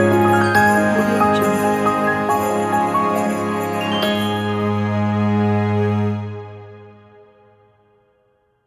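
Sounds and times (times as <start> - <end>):
Christmas carol: 0.0 - 5.2.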